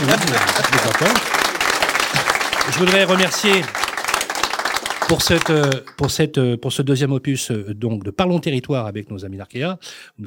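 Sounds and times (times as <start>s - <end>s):
audience applause at a live recorded debate near Rennes: 0.0s - 6.2s
speech: 0.1s - 1.6s, 2.6s - 3.8s, 5.1s - 10.2s.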